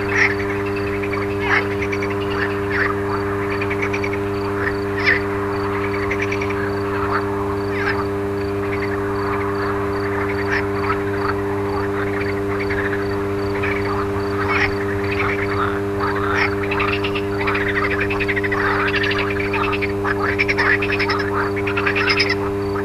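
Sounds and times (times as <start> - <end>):
frogs croaking: 0.0 - 22.8
steady electrical hum: 0.0 - 22.8.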